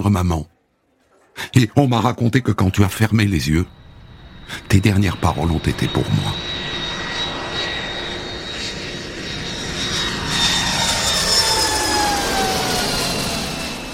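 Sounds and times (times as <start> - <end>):
speech: 0.0 - 0.5, 1.4 - 3.8, 4.5 - 6.6
airplane engine at airport: 2.8 - 13.9.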